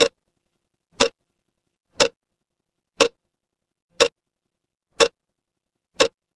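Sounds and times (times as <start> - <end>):
mechanical clock ticking: 0.0 - 0.2, 0.9 - 1.3, 1.9 - 2.3, 3.0 - 3.3, 3.9 - 4.3, 4.9 - 5.3, 5.9 - 6.3.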